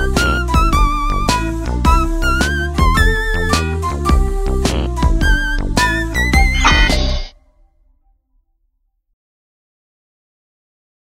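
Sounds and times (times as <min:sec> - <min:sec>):
instrumental music: 0:00.0 - 0:07.3.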